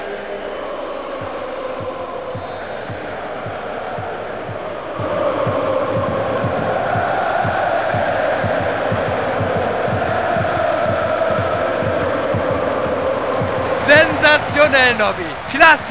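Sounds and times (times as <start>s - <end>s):
large crowd singing a birthday song: 0.0s - 15.8s
rhythmic hand clapping: 13.0s - 15.8s
speech: 14.8s - 15.8s.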